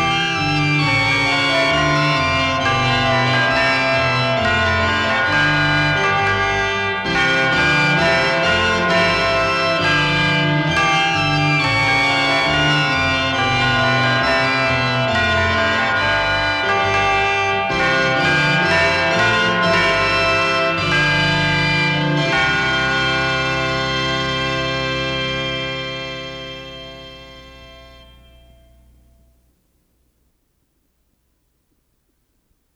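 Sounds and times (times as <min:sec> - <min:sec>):
Christmas organ playing a carol: 0:00.0 - 0:29.5
Christmas chimes: 0:27.1 - 0:29.6.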